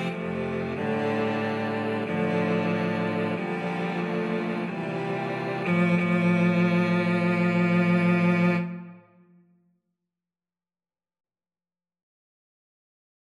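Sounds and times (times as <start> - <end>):
cello quartet: 0.0 - 9.0.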